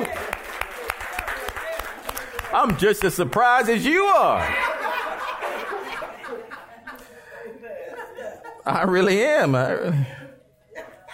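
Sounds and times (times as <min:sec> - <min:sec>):
audience clapping in steady rhythm: 0:00.0 - 0:04.4
speech: 0:02.6 - 0:04.7, 0:08.7 - 0:10.2
laughter: 0:02.6 - 0:11.1.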